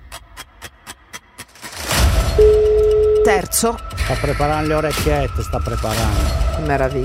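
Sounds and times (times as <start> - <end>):
telephone ringing: 2.4 - 3.4
steady low tone: 2.4 - 4.0
speech: 3.4 - 7.0.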